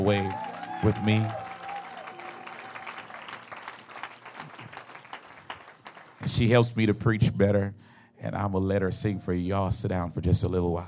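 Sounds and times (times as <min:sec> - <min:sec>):
speech: 0:00.0 - 0:01.4, 0:06.3 - 0:10.8
audience clapping hands: 0:00.0 - 0:06.6.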